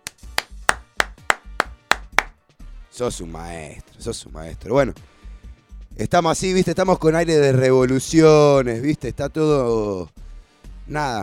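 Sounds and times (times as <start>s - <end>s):
sharp loud hand claps for a guest: 0.0s - 2.3s
speech: 3.0s - 5.2s, 6.0s - 10.2s, 10.9s - 11.2s.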